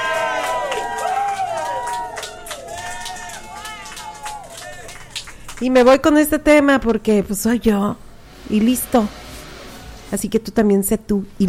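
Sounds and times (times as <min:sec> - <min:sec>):
applause: 0:00.0 - 0:05.9
speech: 0:05.6 - 0:09.2, 0:10.1 - 0:11.4.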